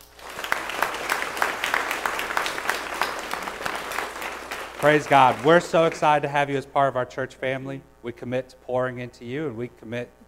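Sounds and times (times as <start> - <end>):
crowd clapping in a large room: 0.0 - 6.6
speech: 4.8 - 10.2.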